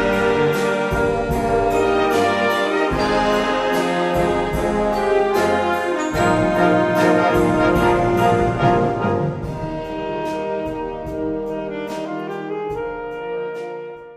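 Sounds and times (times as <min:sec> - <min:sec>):
banda music: 0:00.0 - 0:14.1.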